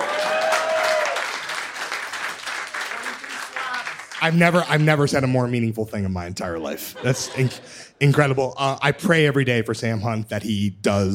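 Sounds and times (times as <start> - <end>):
crowd clapping: 0.0 - 5.4
speech: 4.2 - 11.1
laughter: 6.7 - 8.4.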